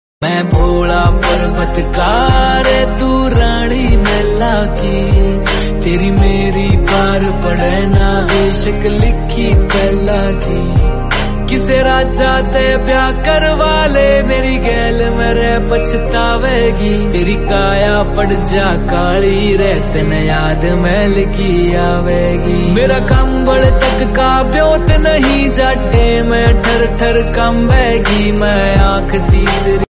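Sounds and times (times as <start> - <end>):
Hindi Bhakti devotional song: 0.2 - 29.9.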